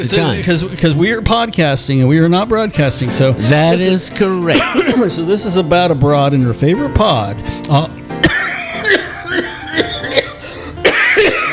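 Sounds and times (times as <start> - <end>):
speech: 0.0 - 8.0
harsh coughing: 4.5 - 5.2, 8.2 - 11.5.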